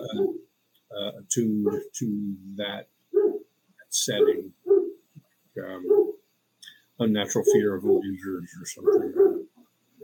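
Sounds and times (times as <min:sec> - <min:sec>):
dog barking: 0:00.0 - 0:00.5, 0:01.6 - 0:01.9, 0:03.2 - 0:03.5, 0:04.2 - 0:05.0, 0:05.8 - 0:06.2, 0:07.4 - 0:08.1, 0:08.8 - 0:10.0
speech: 0:01.3 - 0:03.0, 0:03.9 - 0:04.6, 0:05.6 - 0:06.2, 0:07.0 - 0:09.4.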